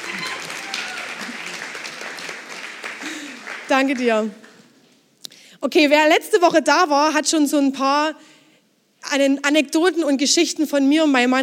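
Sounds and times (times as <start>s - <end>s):
audience applause: 0.0s - 4.6s
speech: 3.7s - 4.4s, 5.6s - 8.3s, 9.1s - 11.4s.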